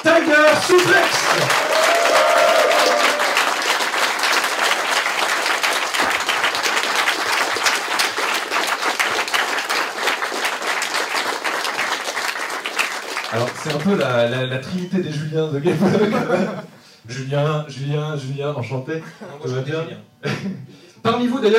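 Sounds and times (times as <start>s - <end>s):
audience applauding warmly: 0.0s - 14.4s
speech: 13.6s - 21.5s
laughter: 15.6s - 16.8s.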